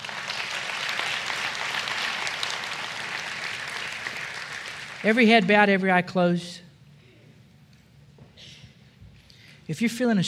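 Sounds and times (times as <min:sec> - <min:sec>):
hand clapping: 0:00.0 - 0:05.2
speech: 0:05.0 - 0:06.6, 0:09.7 - 0:10.2.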